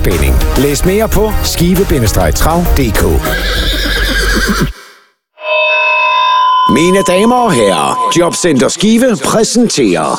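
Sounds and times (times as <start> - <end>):
speech: 0.0 - 4.8, 6.7 - 10.1
horse neighing in a harness racing advert: 3.2 - 4.8
sustained tonal note: 5.4 - 8.8.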